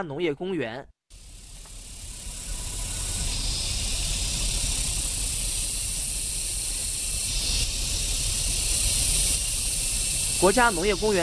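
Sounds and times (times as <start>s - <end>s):
speech: 0.0s - 1.0s, 10.4s - 11.2s
cicadas chirping: 1.1s - 11.2s.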